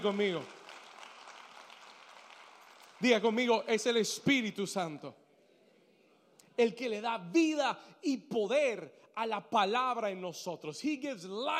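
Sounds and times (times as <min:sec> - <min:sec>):
speech: 0:00.0 - 0:00.6, 0:03.0 - 0:05.2, 0:06.6 - 0:11.5
audience applause: 0:00.0 - 0:03.4.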